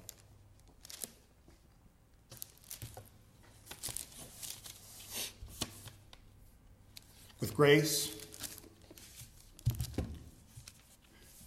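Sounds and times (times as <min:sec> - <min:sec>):
paper rustling and crumpling at a lectern: 0:00.0 - 0:01.3, 0:02.3 - 0:06.0, 0:08.0 - 0:11.4
speech: 0:07.4 - 0:08.2.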